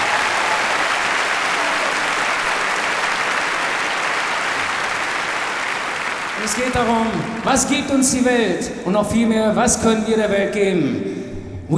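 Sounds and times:
sustained dense applause from a large audience: 0.0 - 8.1
speech: 6.5 - 11.7.

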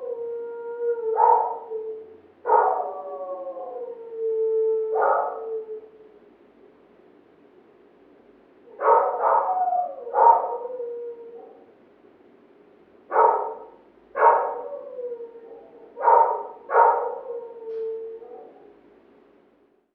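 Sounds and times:
dog barking and howling: 0.0 - 5.9, 8.7 - 11.7, 13.1 - 18.8.

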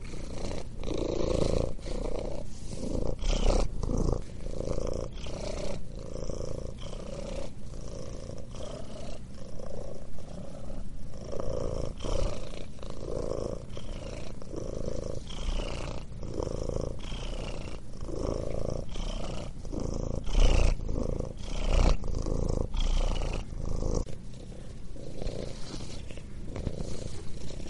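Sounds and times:
cat purring: 0.0 - 27.6.

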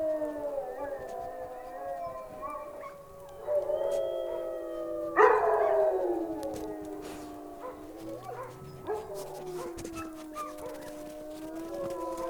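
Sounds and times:
wolves howling in chorus: 0.0 - 12.2.

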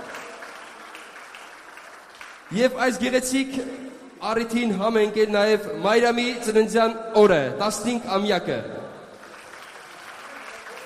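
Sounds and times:
faint applause from guests at a baptism celebration in a restaurant complex: 0.0 - 2.6, 9.1 - 10.8
speech: 2.5 - 8.8.

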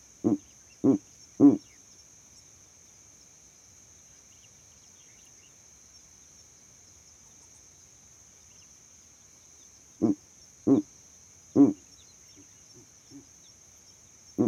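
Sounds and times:
owl hooting at night: 0.2 - 1.7, 10.0 - 10.9, 11.5 - 13.3.

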